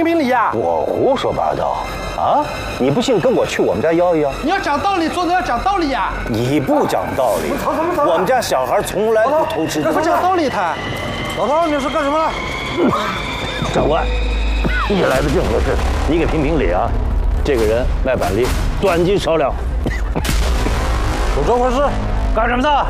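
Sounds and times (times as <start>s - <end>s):
agitated voices talking and shouting: 0.0s - 22.8s
gunshots in a dramatized street scene in Shanghai: 20.2s - 21.5s.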